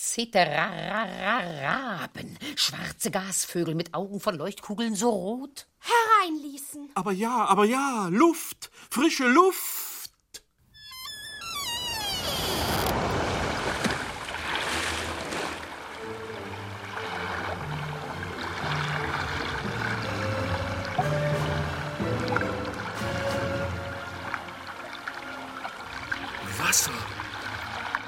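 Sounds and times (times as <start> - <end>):
speech: 0.2 - 9.7
water lapping outside an open window: 12.1 - 28.0.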